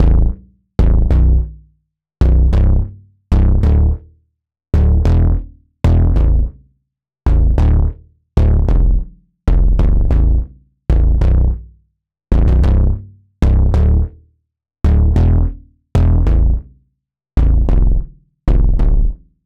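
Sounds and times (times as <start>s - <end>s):
poly bass synth: 0.0s - 1.5s, 2.2s - 4.0s, 4.8s - 6.5s, 7.3s - 11.6s, 12.3s - 14.1s, 14.9s - 16.6s, 17.4s - 19.2s.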